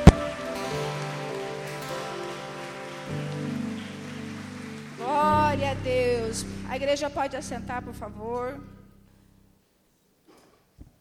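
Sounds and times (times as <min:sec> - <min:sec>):
audience applauding: 0:00.0 - 0:06.8
sustained keyboard chords: 0:00.0 - 0:09.6
speech: 0:05.6 - 0:08.8.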